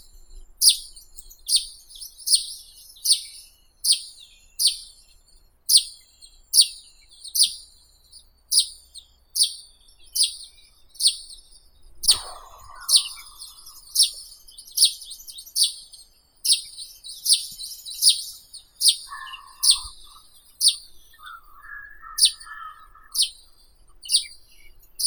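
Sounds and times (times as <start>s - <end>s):
russet sparrow Passer rutilans: 0.0s - 25.0s.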